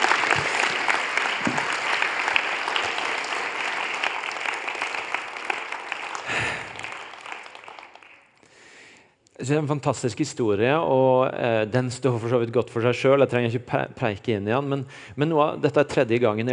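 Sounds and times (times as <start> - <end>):
audience applause: 0.0 - 8.4
speech: 9.5 - 16.5.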